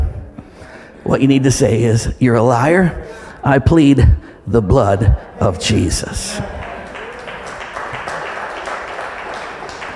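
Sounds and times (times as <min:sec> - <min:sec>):
speech: 0:01.1 - 0:06.6
a few people clapping: 0:06.3 - 0:09.9.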